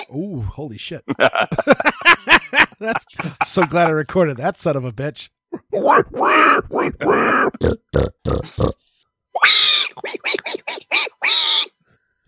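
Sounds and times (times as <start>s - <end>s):
speech: 0.1s - 11.4s
laughter: 1.0s - 4.2s
person imitating adult pig grunts and squeals: 5.6s - 8.8s.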